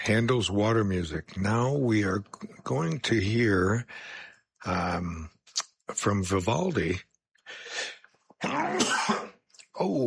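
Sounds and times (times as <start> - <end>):
speech: 0.0 - 10.0
person sneezing: 8.4 - 9.4.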